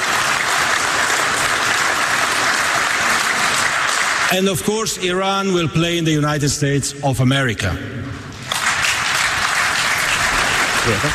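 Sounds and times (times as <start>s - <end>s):
audience applauding: 0.0s - 4.6s, 8.4s - 11.1s
speech: 4.3s - 8.3s, 10.9s - 11.1s.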